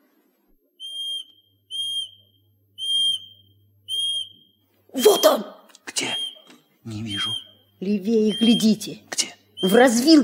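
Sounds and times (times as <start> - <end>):
high-pitched whistle notes calling a bird: 0.8 - 5.4, 7.1 - 7.6, 8.3 - 8.7
speech: 4.9 - 6.1, 6.9 - 10.2.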